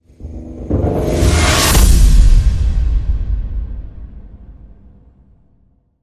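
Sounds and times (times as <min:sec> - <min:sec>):
scared stiff horror hit: 0:00.0 - 0:05.6.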